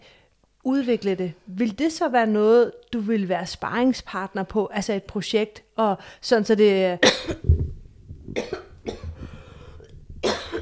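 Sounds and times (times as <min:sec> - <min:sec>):
speech: 0:00.6 - 0:07.5
coughing: 0:07.0 - 0:07.5, 0:08.4 - 0:10.6.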